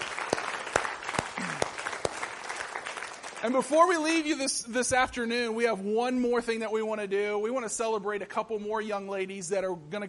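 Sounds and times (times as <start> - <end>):
audience applause: 0.0 - 3.7
speech: 3.4 - 10.0.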